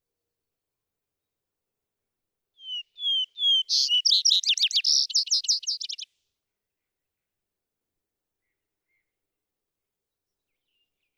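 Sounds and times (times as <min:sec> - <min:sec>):
vesper sparrow song: 0:02.6 - 0:06.1, 0:10.1 - 0:11.1.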